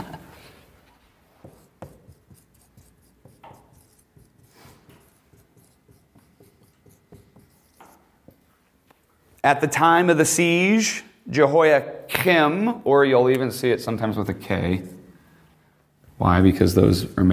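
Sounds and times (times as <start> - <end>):
pen writing with a different colored pen: 1.4 - 8.4
speech: 9.4 - 15.0, 16.2 - 17.3.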